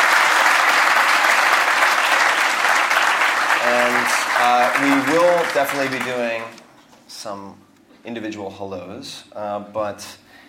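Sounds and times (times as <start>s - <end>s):
audience applause at a talk: 0.0s - 6.6s
speech: 4.4s - 10.4s.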